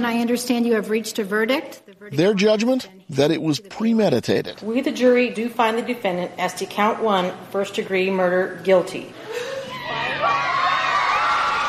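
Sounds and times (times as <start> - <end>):
speech: 0.0 - 10.0
crowd cheering outside a courthouse after a guilty verdict: 9.6 - 11.6.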